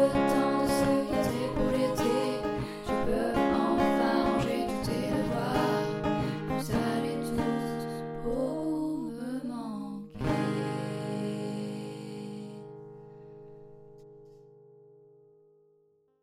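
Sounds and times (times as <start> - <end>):
person singing: 0.0 - 12.7.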